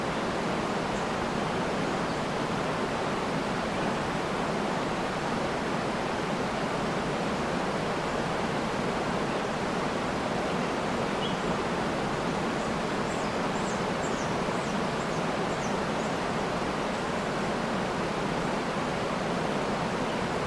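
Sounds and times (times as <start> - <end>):
creek waterfall at 40m distance: 0.0 - 20.4
forest birds: 0.1 - 5.3, 7.2 - 17.8.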